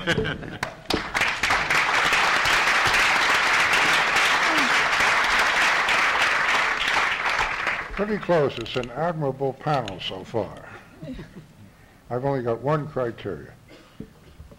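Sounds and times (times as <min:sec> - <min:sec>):
speech: 0:00.0 - 0:00.7, 0:08.0 - 0:11.5, 0:12.1 - 0:14.1
audience applause: 0:00.6 - 0:08.5.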